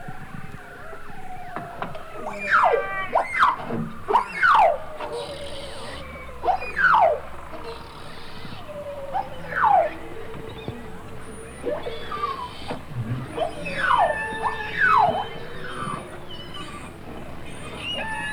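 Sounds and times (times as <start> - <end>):
beluga whales calling in the Arctic: 0.0 - 18.3.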